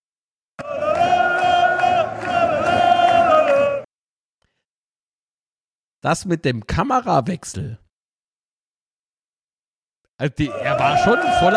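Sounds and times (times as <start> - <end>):
football fans in a standing block roaring and chanting: 0.6 - 3.9, 10.4 - 11.5
speech: 6.0 - 7.8, 10.2 - 11.5.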